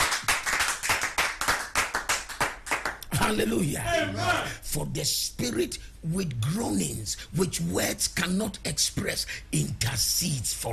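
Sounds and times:
audience clapping in a steady rapid rhythm: 0.0 - 3.4
speech: 3.3 - 10.7.

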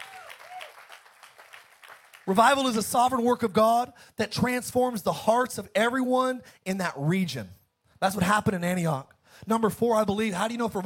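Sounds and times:
audience hand clapping: 0.0 - 2.7, 10.4 - 10.8
speech: 2.3 - 10.8.

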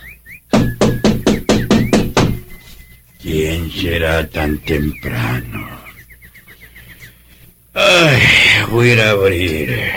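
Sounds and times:
knocking on a door: 0.5 - 2.5
speech: 3.2 - 5.8, 7.8 - 9.9.

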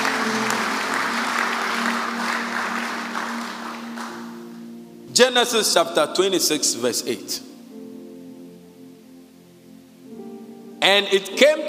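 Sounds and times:
audience applause: 0.0 - 4.4
speech: 5.2 - 7.5, 10.9 - 11.6.

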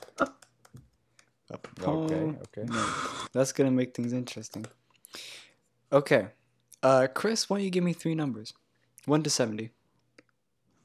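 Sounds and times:
computer keyboard typing: 0.0 - 2.8, 3.7 - 4.8
speech: 1.8 - 4.8, 5.9 - 9.8.

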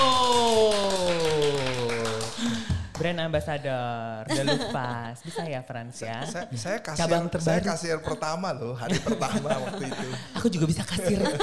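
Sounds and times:
sharp hand claps: 0.0 - 3.2
speech: 3.0 - 11.4
laughter: 4.3 - 5.1, 7.8 - 11.4.

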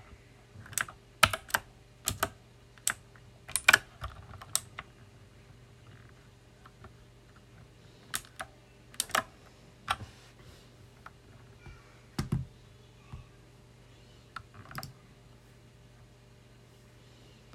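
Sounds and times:
mechanical keyboard typing: 0.6 - 4.9, 8.1 - 9.3, 14.4 - 14.9.

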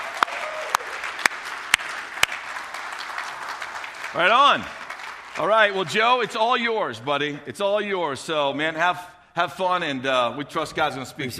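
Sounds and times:
hand claps at a church service welcoming a visiting missionary speaker: 0.0 - 6.4
speech: 4.1 - 4.8, 5.4 - 11.3.

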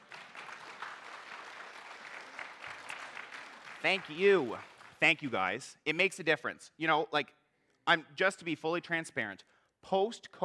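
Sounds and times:
audience clapping: 0.0 - 5.8
speech: 3.8 - 10.4.

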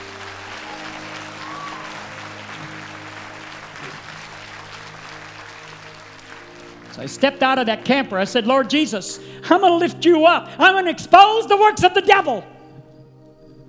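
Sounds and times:
audience clapping: 0.0 - 8.8
speech: 7.0 - 12.5.

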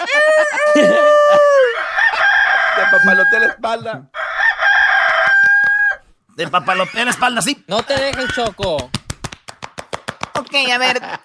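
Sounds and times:
person imitating rooster crow: 0.0 - 6.0
speech: 3.0 - 4.2, 6.4 - 9.0, 10.5 - 11.2.

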